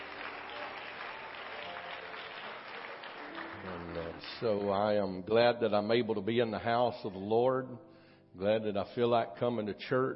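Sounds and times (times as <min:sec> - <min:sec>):
audience hand clapping: 0:00.0 - 0:05.0
speech: 0:04.0 - 0:10.1.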